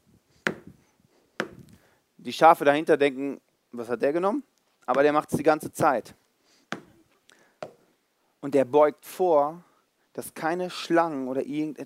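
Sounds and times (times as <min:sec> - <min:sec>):
stick striking the ground: 0:00.5 - 0:00.8, 0:01.4 - 0:01.7, 0:06.7 - 0:07.0
speech: 0:02.2 - 0:06.2, 0:08.4 - 0:11.8.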